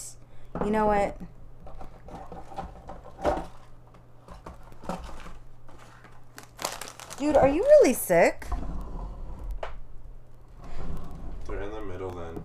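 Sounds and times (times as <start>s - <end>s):
speech: 0.6s - 1.4s, 7.2s - 8.5s
cough drop wrapper crinkling: 4.7s - 8.2s.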